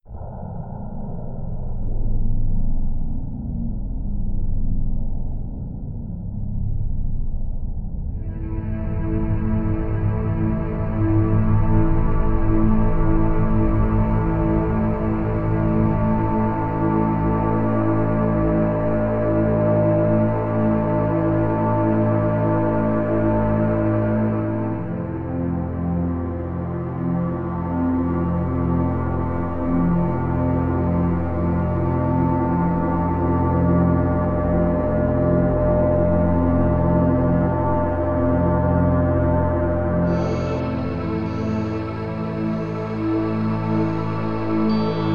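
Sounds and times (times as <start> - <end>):
dark synth pads: 0.0 - 45.1.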